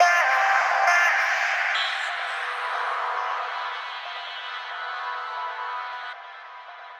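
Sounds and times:
background vocal loop: 0.0 - 6.9.

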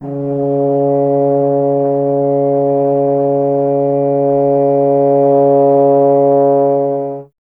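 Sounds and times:
tuba solo: 0.0 - 7.3.

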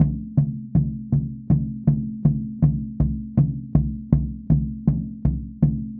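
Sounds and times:
Native American pow wow drum: 0.0 - 5.9.

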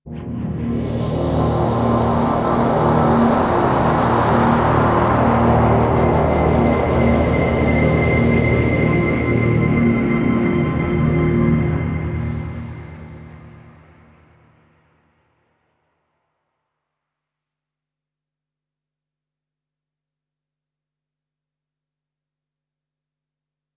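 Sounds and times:
Triton synthesizer pad playing a C minor seventh chord: 0.1 - 14.3.

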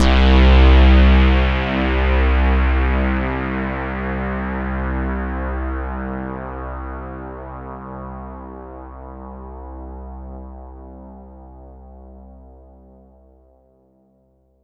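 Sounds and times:
Oberheim OB-Xa synth pad: 0.0 - 3.4.

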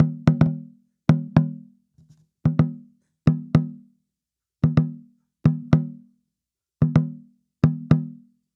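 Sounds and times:
African tambora drum: 0.0 - 3.9, 4.6 - 6.0, 6.8 - 8.3.

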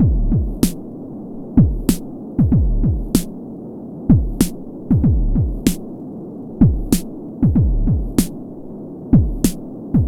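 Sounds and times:
booming beat: 0.0 - 0.8, 1.6 - 3.3, 4.1 - 5.8, 6.6 - 8.3, 9.2 - 10.0.

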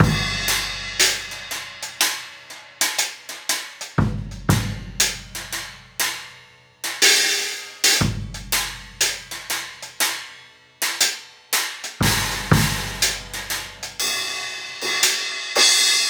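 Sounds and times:
kick drum: 0.0 - 0.8, 4.0 - 5.7, 8.0 - 9.4, 12.0 - 13.7
cymbal: 0.0 - 16.0.

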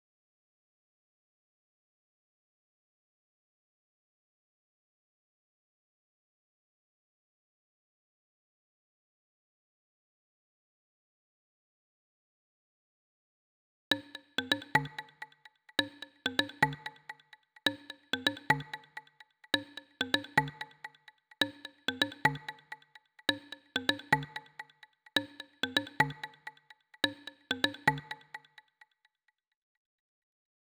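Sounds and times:
percussion at 128 BPM: 13.9 - 29.0.

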